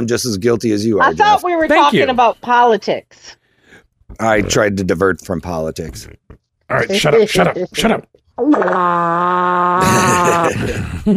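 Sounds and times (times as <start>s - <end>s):
speech: 0.0s - 3.4s, 4.1s - 11.1s
fart: 8.4s - 10.5s.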